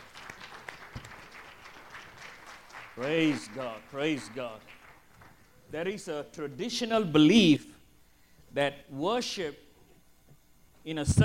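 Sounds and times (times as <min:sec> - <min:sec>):
audience clapping: 0:00.0 - 0:05.6
speech: 0:03.0 - 0:04.8, 0:05.7 - 0:07.8, 0:08.5 - 0:09.6, 0:10.8 - 0:11.2.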